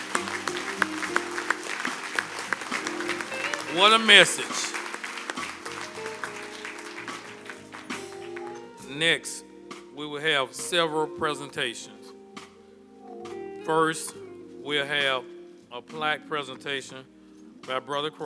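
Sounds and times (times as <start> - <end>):
round of applause: 0.0 - 8.8
speech: 3.8 - 4.8, 9.0 - 12.0, 13.6 - 18.2.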